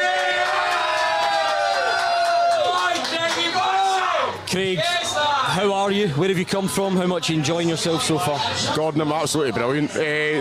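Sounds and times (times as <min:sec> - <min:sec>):
audience clapping: 0:00.0 - 0:04.1
crowd cheering and whooping: 0:00.0 - 0:04.4
speech: 0:04.5 - 0:10.3.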